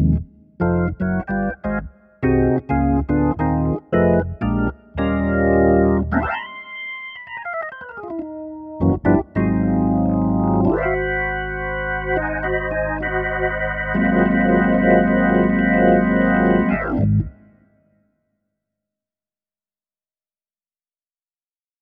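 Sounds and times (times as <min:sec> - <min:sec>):
swing jazz on organ: 0:00.0 - 0:06.4, 0:08.8 - 0:17.3.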